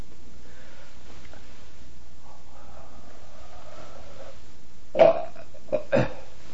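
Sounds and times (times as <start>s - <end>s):
faint breathing: 0.4s - 4.6s
person making a gag breath with the throat closed: 4.9s - 6.3s.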